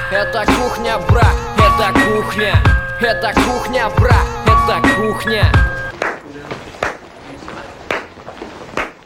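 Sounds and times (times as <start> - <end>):
speech: 0.2 - 5.7
slow clapping: 5.9 - 7.1, 7.8 - 9.0.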